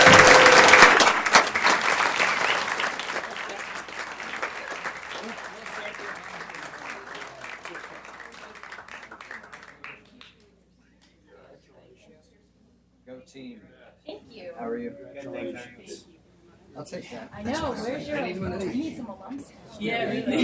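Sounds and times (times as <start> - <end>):
applause after a mayor's proclamation of Portland State University Day in Portland, Oregon: 0.0 - 10.4
speech: 17.1 - 20.4.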